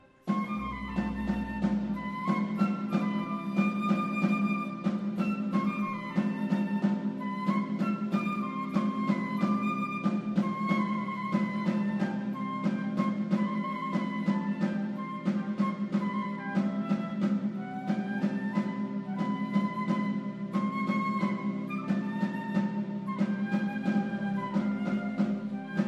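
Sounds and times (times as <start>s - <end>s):
flautin piccolo flute: 0.0s - 25.8s.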